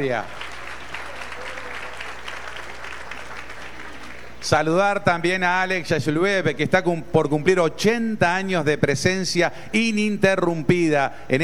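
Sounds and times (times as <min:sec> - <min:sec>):
speech: 0:00.0 - 0:00.4, 0:04.4 - 0:11.4
crowd applauding: 0:00.0 - 0:04.6
low electrical hum: 0:00.0 - 0:11.4.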